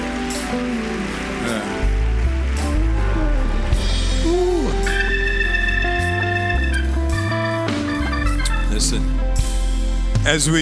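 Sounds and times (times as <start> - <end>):
audience clapping hands: 0.0 - 9.0
speech: 10.3 - 10.6.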